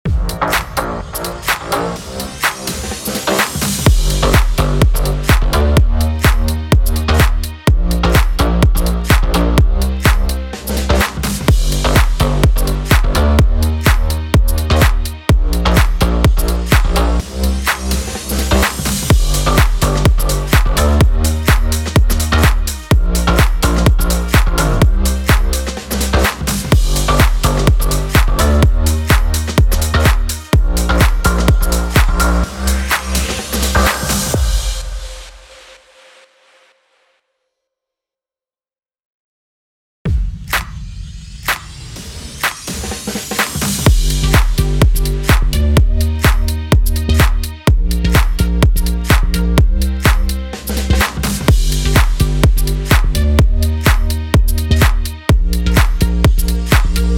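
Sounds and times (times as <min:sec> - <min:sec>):
future house music in G minor: 0:00.1 - 0:36.0, 0:42.3 - 0:57.1.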